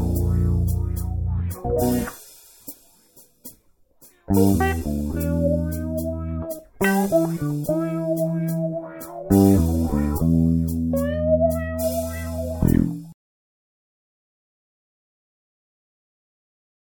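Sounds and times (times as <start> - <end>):
slow jazz: 0.0 - 3.0, 4.0 - 13.1.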